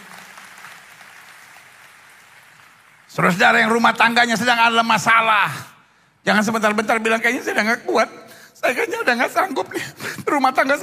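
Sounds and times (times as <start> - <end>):
audience applause: 0.0 - 3.5
speech: 3.2 - 10.8.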